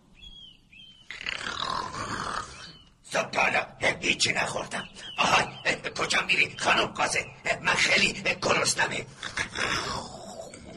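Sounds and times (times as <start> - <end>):
thin high bird-like chirp: 0.0 - 3.1, 4.1 - 8.6
speech: 3.1 - 10.2.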